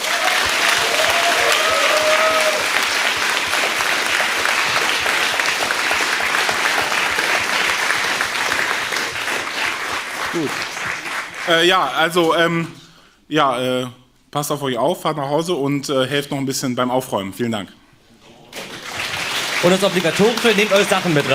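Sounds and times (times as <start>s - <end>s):
audience applause: 0.0s - 11.7s, 18.6s - 21.3s
speech: 11.5s - 17.8s, 19.6s - 21.3s.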